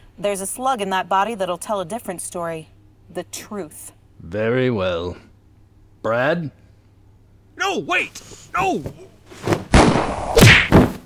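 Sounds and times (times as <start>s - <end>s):
speech: 0.2s - 5.3s, 6.0s - 6.6s, 7.6s - 9.5s
right hook punches thudding: 8.6s - 11.0s.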